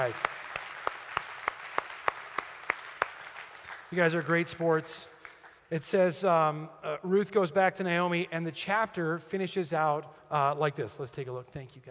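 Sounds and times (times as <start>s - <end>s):
speech: 0.0s - 0.4s, 3.9s - 5.1s, 5.7s - 11.9s
audience applause: 0.0s - 4.4s.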